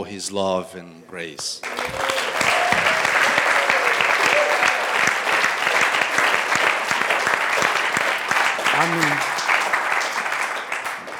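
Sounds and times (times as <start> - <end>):
speech: 0.0 - 3.2, 8.8 - 9.3
audience clapping: 1.6 - 11.1.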